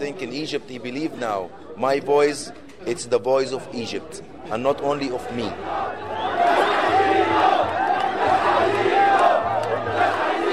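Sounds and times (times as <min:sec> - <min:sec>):
speech: 0:00.0 - 0:06.3
large crowd shouting protest chant: 0:04.4 - 0:10.5.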